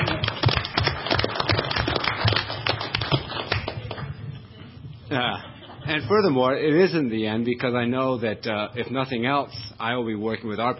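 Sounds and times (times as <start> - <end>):
round of applause: 0.0 - 4.4
laughter: 4.5 - 6.5
speech: 5.1 - 10.7.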